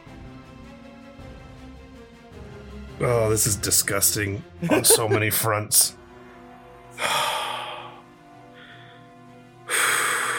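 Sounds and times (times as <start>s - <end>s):
speech: 3.0s - 6.0s
laughter: 4.6s - 5.9s
deep breath: 7.0s - 10.3s.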